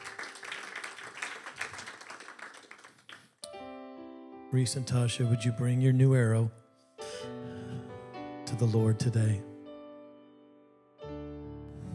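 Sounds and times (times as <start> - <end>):
audience applause: 0.0 - 3.3
speech: 4.5 - 6.6, 8.6 - 9.5.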